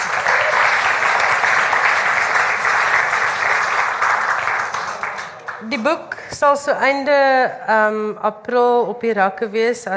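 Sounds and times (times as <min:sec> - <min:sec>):
audience applause: 0:00.0 - 0:05.7
speech: 0:05.7 - 0:09.9.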